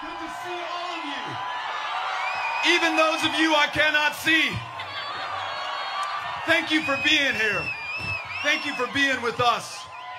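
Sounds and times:
rally crowd cheering: 0.0 - 10.1
speech: 2.6 - 4.7, 6.4 - 9.8.

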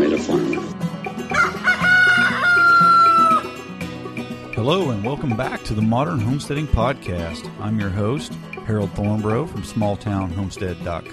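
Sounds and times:
rooster crowing: 1.3 - 3.6
speech: 4.6 - 11.1.

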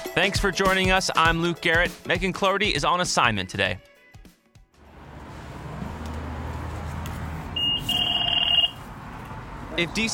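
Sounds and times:
speech: 0.2 - 3.9, 9.8 - 10.1
bus fare box payment beep: 7.6 - 8.8.

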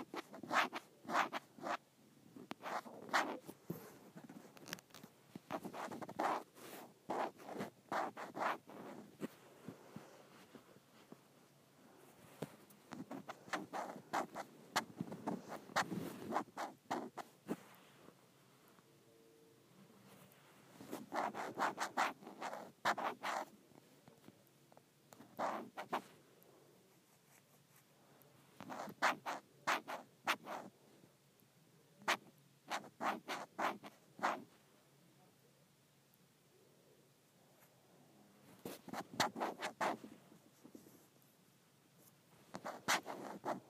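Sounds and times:
scratching on an iPad case: 0.0 - 1.8, 2.4 - 9.4, 12.3 - 17.7, 20.8 - 23.5, 25.2 - 26.1, 28.6 - 30.7, 32.1 - 34.4, 38.6 - 41.1, 42.5 - 43.6.

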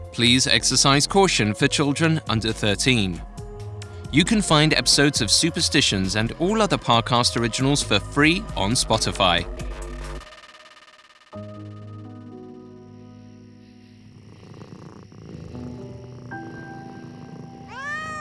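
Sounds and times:
cat purring: 0.0 - 10.3, 14.0 - 18.1
speech: 0.1 - 3.4, 4.1 - 9.7
cat meowing: 17.6 - 18.1.

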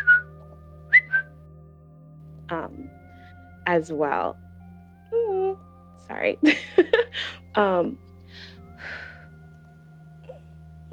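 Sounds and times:
whistling sound made as vocal tic: 0.0 - 0.3, 0.9 - 1.3
speech: 3.7 - 4.4, 6.1 - 9.0.

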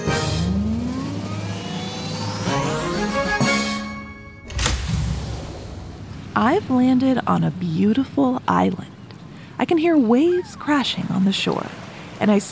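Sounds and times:
pretend time machine travel sound effect: 0.0 - 6.8
speech: 6.4 - 8.9, 9.6 - 12.5.

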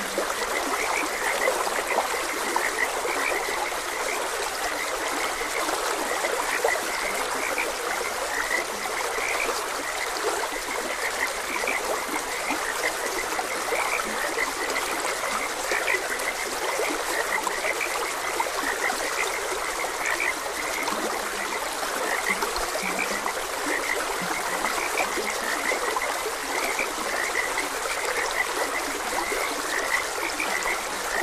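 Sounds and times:
flowing water: 0.0 - 31.2
frogs croaking: 0.0 - 31.2.

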